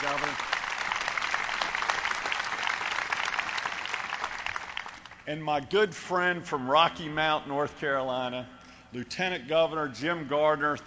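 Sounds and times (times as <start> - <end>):
crowd clapping: 0.0 - 5.2
speech: 5.3 - 10.8.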